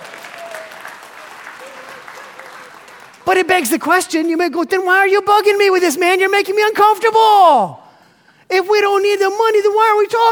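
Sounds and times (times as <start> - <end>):
crowd clapping: 0.0 - 3.7
speech: 3.3 - 7.8, 8.5 - 10.3.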